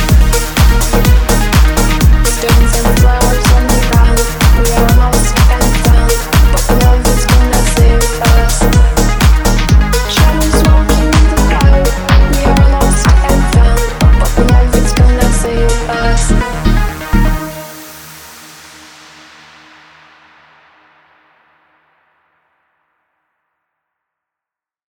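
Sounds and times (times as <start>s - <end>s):
loud club bass on front car audio: 0.0s - 17.9s.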